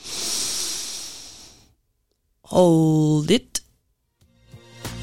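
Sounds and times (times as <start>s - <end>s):
deep breath in through the nose during breathing exercises: 0.0s - 1.8s
speech: 2.5s - 3.6s.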